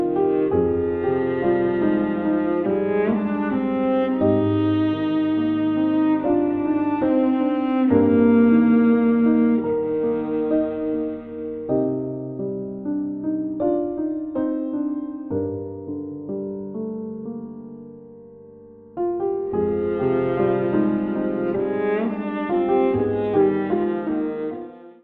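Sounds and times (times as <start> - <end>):
viola playing a romance in E-flat major: 0.0 - 16.0, 19.0 - 25.0
piano playing a romance in E-flat major: 0.0 - 25.0.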